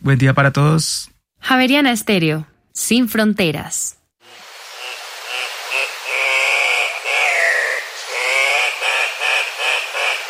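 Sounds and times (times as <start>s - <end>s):
speech: 0.0s - 4.4s
Andean cock-of-the-rock call: 4.7s - 10.2s.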